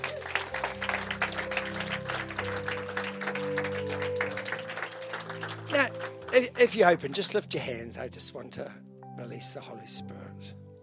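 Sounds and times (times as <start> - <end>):
audience clapping: 0.0 - 7.7
organ or keyboard chords humming: 0.0 - 10.8
speech: 6.6 - 10.6.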